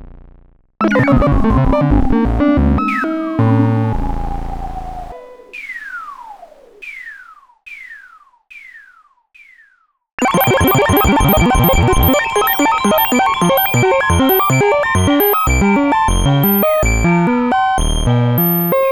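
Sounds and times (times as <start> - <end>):
5U modular synthesizer effects: 0.8 - 6.8, 10.2 - 18.9.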